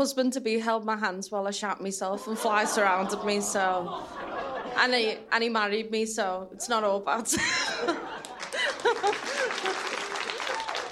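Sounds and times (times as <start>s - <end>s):
speech: 0.0s - 8.2s
laughter: 2.2s - 5.3s, 7.3s - 10.9s
audience applause: 8.2s - 10.9s.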